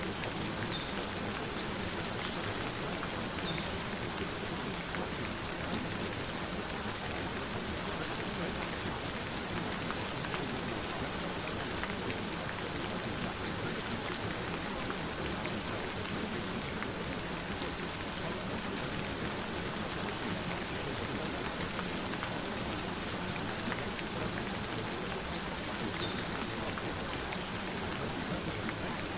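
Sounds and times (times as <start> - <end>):
rain: 0.0 - 29.1.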